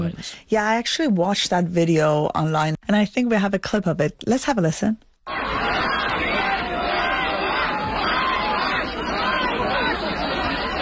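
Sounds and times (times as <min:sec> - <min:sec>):
speech: 0:00.1 - 0:05.6
protest crowd jeering and shouting: 0:05.3 - 0:10.8.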